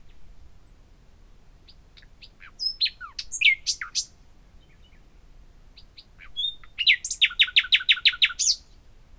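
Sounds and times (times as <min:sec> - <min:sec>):
common nightingale Luscinia megarhynchos singing: 0:00.0 - 0:00.8, 0:01.6 - 0:05.1, 0:05.8 - 0:08.8.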